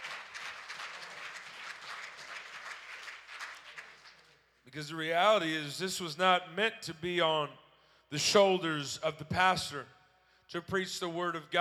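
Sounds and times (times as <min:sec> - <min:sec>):
crowd clapping: 0:00.0 - 0:04.6
speech: 0:04.7 - 0:11.5.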